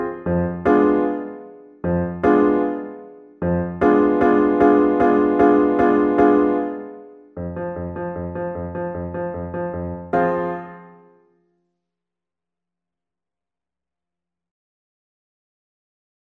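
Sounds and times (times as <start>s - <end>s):
solo piano: 0.0s - 11.3s.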